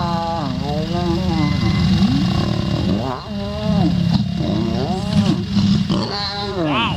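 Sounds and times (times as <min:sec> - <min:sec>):
lions mating: 0:00.0 - 0:06.9.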